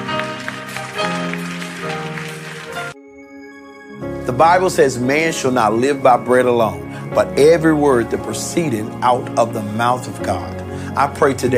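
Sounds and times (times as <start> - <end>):
audience clapping: 0.0 - 3.0
speech: 4.3 - 11.5.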